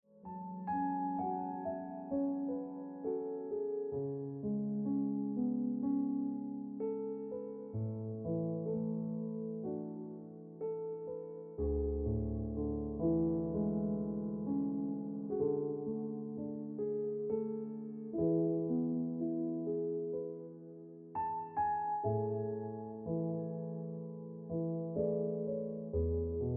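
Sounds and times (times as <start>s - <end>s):
piano ringtone music: 0.1s - 26.5s.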